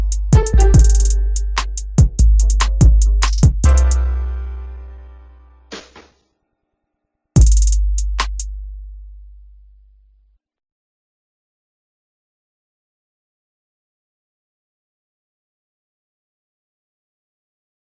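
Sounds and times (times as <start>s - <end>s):
music: 0.0s - 6.2s, 7.4s - 9.4s.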